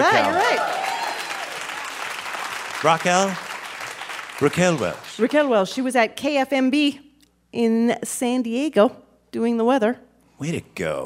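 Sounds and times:
speech: 0.0s - 0.8s, 2.8s - 3.5s, 4.4s - 11.0s
audience applause: 0.0s - 5.5s.

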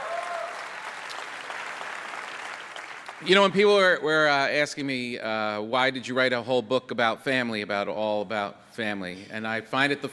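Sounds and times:
audience round of applause: 0.0s - 3.6s
speech: 3.2s - 10.1s.

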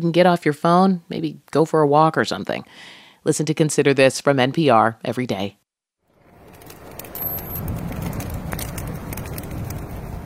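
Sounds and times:
speech: 0.0s - 5.6s
fire crackling: 6.0s - 10.2s.

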